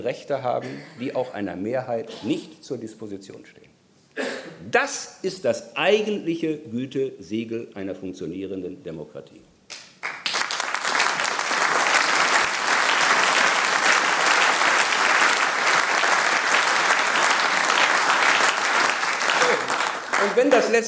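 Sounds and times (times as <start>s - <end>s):
speech: 0.0s - 9.4s, 20.4s - 20.8s
audience applause: 10.0s - 20.8s.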